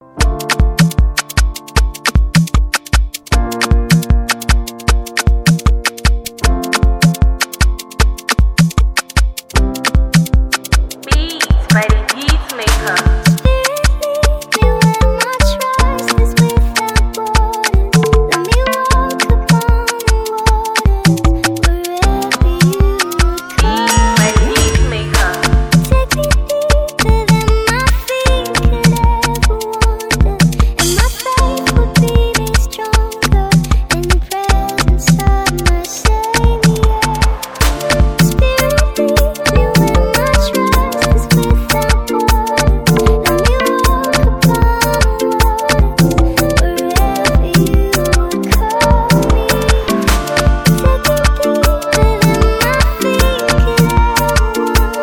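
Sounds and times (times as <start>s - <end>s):
music beat: 0.0s - 55.0s.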